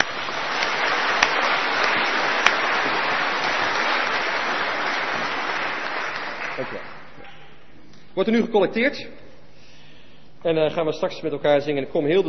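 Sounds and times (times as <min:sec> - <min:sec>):
applause: 0:00.0 - 0:07.2
speech: 0:08.2 - 0:09.2, 0:10.4 - 0:12.2.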